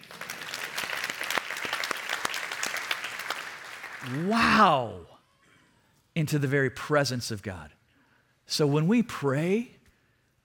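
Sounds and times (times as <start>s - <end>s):
audience golf clap: 0.0s - 4.4s
speech: 4.0s - 5.1s, 6.2s - 7.8s, 8.5s - 9.8s.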